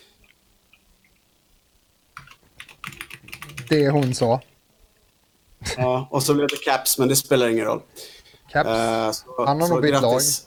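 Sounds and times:
computer keyboard typing a chat message: 2.2 - 4.5
speech: 3.7 - 4.5, 5.8 - 10.4.

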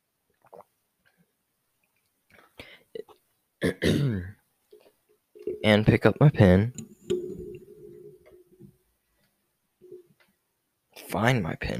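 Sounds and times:
person sipping water: 0.3 - 1.2, 1.8 - 3.3, 4.7 - 5.7, 6.7 - 8.7
speech: 3.7 - 4.4, 5.6 - 6.8, 11.2 - 11.7.

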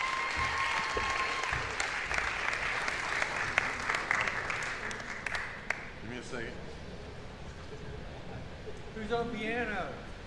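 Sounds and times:
church congregation applause welcoming a guest speaker: 0.0 - 5.9
speech: 9.1 - 10.0.

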